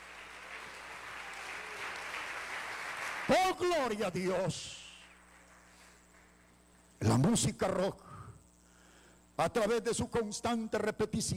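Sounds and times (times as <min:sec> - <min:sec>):
audience applause: 0:00.0 - 0:03.6
speech: 0:03.3 - 0:04.8, 0:07.1 - 0:08.1, 0:09.4 - 0:11.3.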